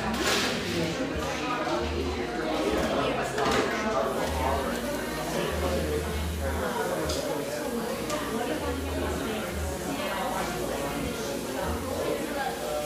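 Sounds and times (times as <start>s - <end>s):
voices chattering in an espresso shop in Portland, Oregon: 0.0s - 12.8s.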